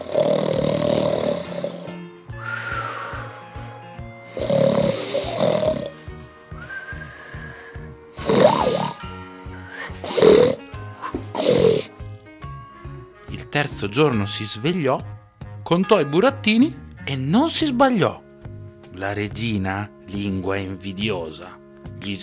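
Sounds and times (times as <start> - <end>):
loud snoring: 0.0 - 12.1
speech: 13.6 - 15.1, 15.7 - 18.2, 19.0 - 22.2.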